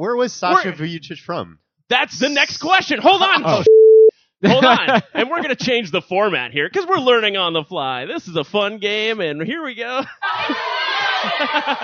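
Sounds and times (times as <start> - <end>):
speech: 0.0 - 11.8
laughter: 4.4 - 5.8, 10.0 - 11.8
crowd cheering: 10.2 - 11.8.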